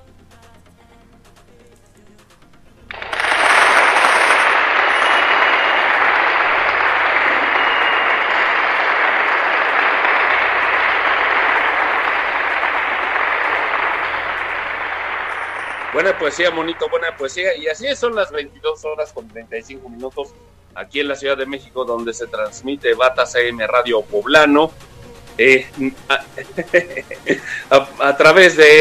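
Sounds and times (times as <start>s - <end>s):
applause: 2.9s - 18.4s, 26.5s - 28.8s
speech: 16.0s - 24.8s, 25.4s - 28.8s
laughter: 25.4s - 27.8s.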